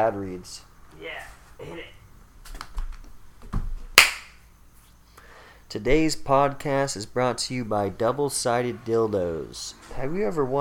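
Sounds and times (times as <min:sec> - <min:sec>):
speech: 0:00.0 - 0:02.0, 0:05.7 - 0:10.6
hand clapping: 0:04.0 - 0:04.4.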